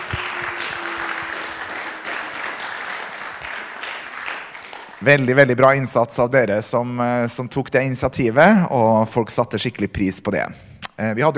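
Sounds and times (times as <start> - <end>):
audience applause: 0.0 - 5.6
speech: 5.0 - 11.3.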